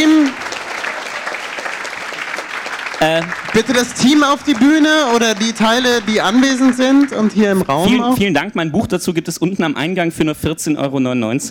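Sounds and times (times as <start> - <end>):
audience applause after an on-stage talk: 0.0 - 8.3
speech: 3.0 - 11.4.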